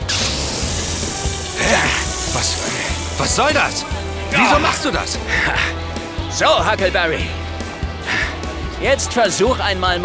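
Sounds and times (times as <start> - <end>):
air hissing out of a punctured tyre: 0.1 - 5.5
speech: 2.4 - 7.4, 8.8 - 10.0.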